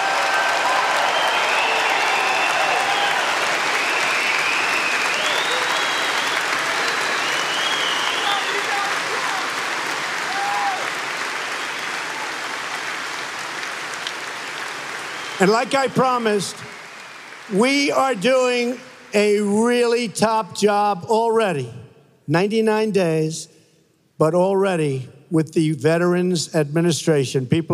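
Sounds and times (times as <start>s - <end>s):
audience round of applause: 0.0s - 19.5s
speech: 15.4s - 16.8s, 17.5s - 23.6s, 24.2s - 27.7s.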